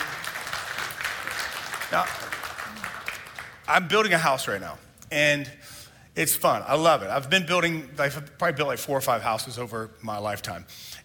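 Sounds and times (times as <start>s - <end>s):
audience clapping hands: 0.0s - 4.2s
speech: 1.9s - 2.3s, 3.7s - 5.6s, 6.2s - 10.9s.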